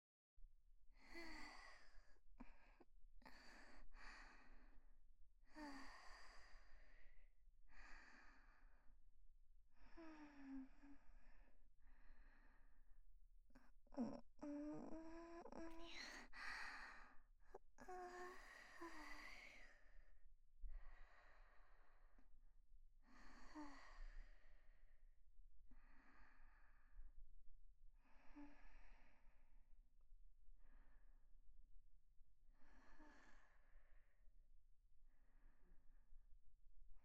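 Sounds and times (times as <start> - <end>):
woman breathing calmly in sleep beside her boyfriend: 1.0 - 4.9, 5.5 - 8.9, 9.8 - 12.9, 13.6 - 22.3, 23.0 - 24.7, 25.7 - 27.1, 32.5 - 34.1.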